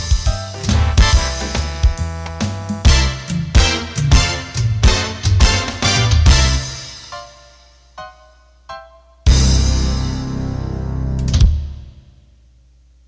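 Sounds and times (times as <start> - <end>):
up-tempo big band music: 0.0 - 7.8, 9.3 - 11.6.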